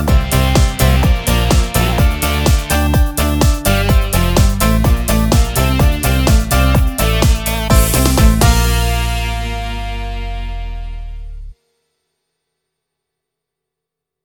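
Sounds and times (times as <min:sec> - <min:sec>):
disco music: 0:00.0 - 0:11.3.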